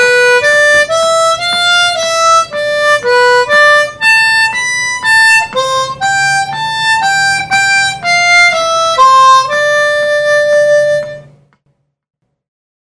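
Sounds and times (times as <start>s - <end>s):
harmonica boogie pattern: 0.0s - 11.5s.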